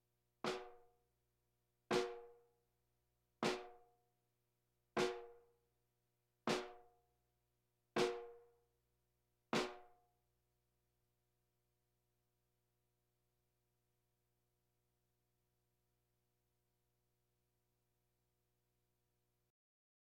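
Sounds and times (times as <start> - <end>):
drums: 0.4 - 0.9, 1.9 - 2.4, 3.4 - 3.9, 5.0 - 5.4, 6.5 - 6.9, 8.0 - 8.5, 9.6 - 10.0
bongos: 1.9 - 2.4, 8.0 - 8.4.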